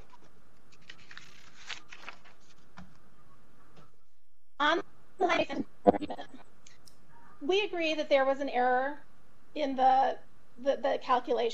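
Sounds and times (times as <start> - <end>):
pieces of paper rustling: 0.0 - 3.0
speech: 4.6 - 6.4, 7.4 - 11.5.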